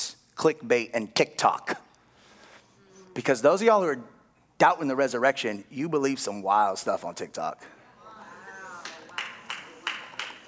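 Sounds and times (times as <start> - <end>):
speech: 0.4 - 1.8, 3.2 - 7.8
sparse hand claps: 8.8 - 10.4.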